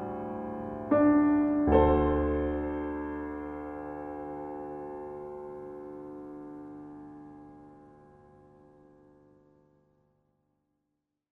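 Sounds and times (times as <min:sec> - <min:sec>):
slow minor solo piano piece: 0:00.0 - 0:09.0.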